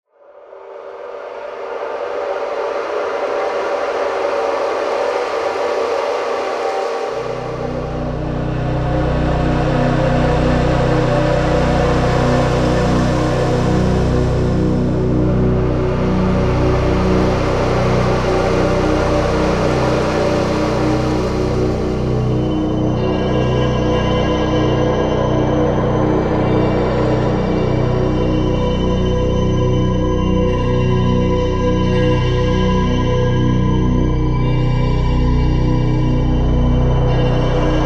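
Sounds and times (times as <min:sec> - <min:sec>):
ambient music: 0:00.2 - 0:37.8.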